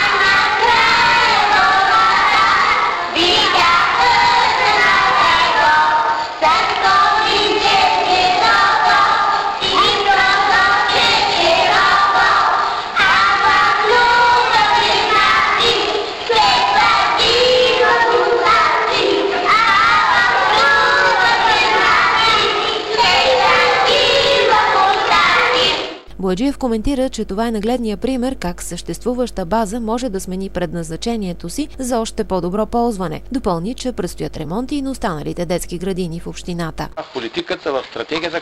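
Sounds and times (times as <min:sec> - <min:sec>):
group of children singing a song: 0:00.0 - 0:26.0
speech: 0:26.3 - 0:38.4.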